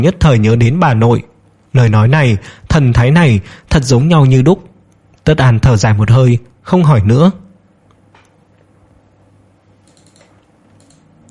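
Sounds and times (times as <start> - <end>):
speech: 0.0 - 4.7, 5.3 - 7.4
typing on a computer keyboard: 9.8 - 11.2.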